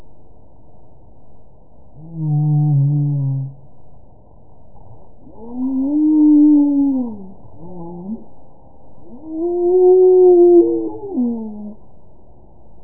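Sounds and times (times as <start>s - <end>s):
humpback whale song: 2.0s - 3.6s, 5.3s - 8.3s, 9.1s - 11.8s.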